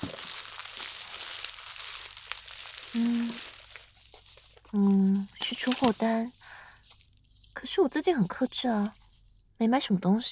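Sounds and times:
crinkling of a padded bubble mailer being opened: 0.0s - 7.3s
speech: 3.0s - 3.6s, 4.7s - 6.4s, 7.6s - 9.0s, 9.6s - 10.3s.

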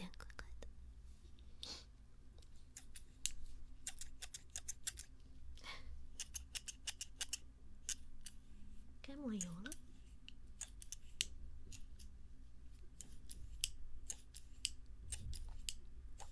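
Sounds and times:
low steady hum: 0.0s - 16.3s
short scissors opened and closed with both hands: 2.8s - 5.1s, 6.2s - 8.4s, 9.4s - 9.9s, 10.6s - 12.1s, 13.0s - 16.3s.

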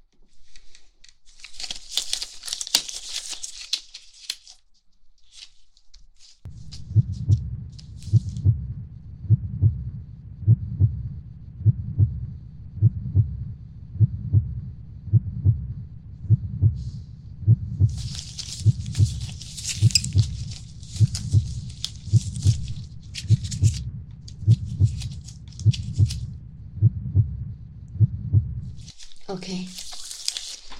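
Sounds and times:
crinkly rustling: 0.1s - 8.4s, 17.9s - 26.4s, 28.7s - 30.7s
heartbeat heard through a stethoscope: 6.5s - 28.9s
speech: 29.4s - 29.8s.

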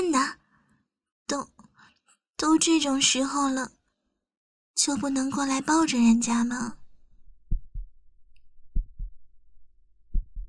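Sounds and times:
speech: 2.4s - 3.8s, 4.8s - 6.8s
heartbeat: 7.3s - 8.0s, 8.7s - 9.3s, 10.0s - 10.4s.

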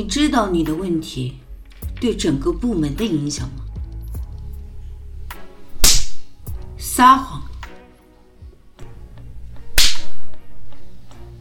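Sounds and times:
speech: 0.0s - 1.4s, 2.0s - 3.6s, 7.0s - 7.4s
rattan cane strike crack: 5.8s - 6.3s, 9.8s - 10.2s.

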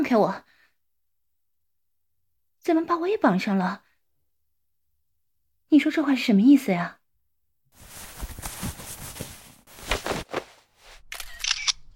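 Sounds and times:
speech: 0.0s - 0.5s, 2.6s - 3.9s, 5.7s - 7.0s
camera shutter clicks taking photos of a captive: 11.1s - 11.9s.

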